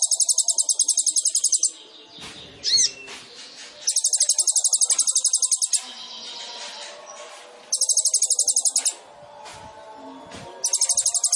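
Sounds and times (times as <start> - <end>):
sunbird singing: 0.0 - 7.0, 7.7 - 11.3.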